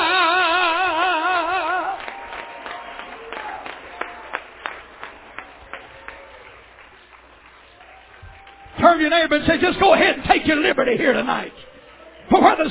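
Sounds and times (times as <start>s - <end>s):
person singing: 0.0s - 2.1s
congregation clapping hands during a church service: 0.0s - 9.6s
speech: 9.2s - 11.7s, 12.3s - 12.6s.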